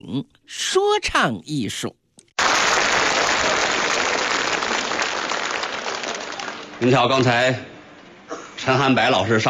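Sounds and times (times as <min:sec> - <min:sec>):
speech: 0:00.0 - 0:02.0, 0:06.8 - 0:07.7, 0:08.6 - 0:09.4
audience applause: 0:02.4 - 0:07.1.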